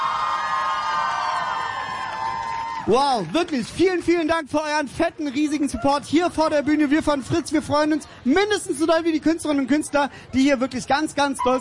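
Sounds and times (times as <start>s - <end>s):
crowd cheering and whooping before stage: 0.0s - 3.3s
speech: 2.9s - 11.5s.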